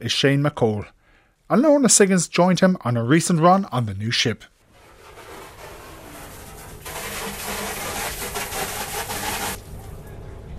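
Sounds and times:
speech: 0.0s - 4.5s
deck washing on the new Aran Island ferry: 4.7s - 10.0s.

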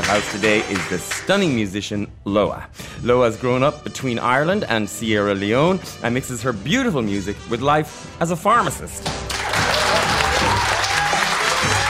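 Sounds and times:
audience applause: 0.0s - 1.3s, 9.3s - 11.8s
speech: 0.1s - 9.4s.

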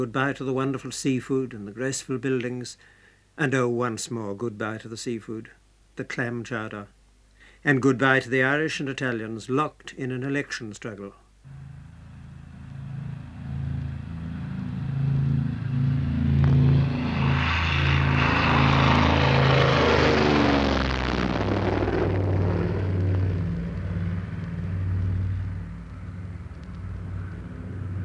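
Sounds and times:
speech: 0.0s - 7.0s, 7.6s - 11.6s
airplane propeller engine drone during takeoff: 11.5s - 28.0s
roaring rush: 11.5s - 28.0s.

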